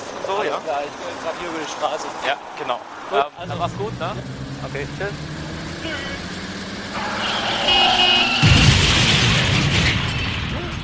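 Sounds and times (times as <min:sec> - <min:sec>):
speech: 0:00.3 - 0:06.4
car crash running someone over: 0:07.0 - 0:10.8.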